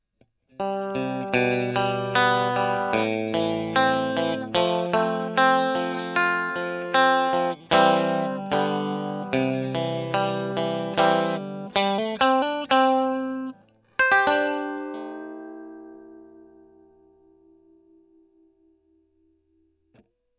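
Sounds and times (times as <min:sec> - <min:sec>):
electric guitar: 0:00.6 - 0:18.9.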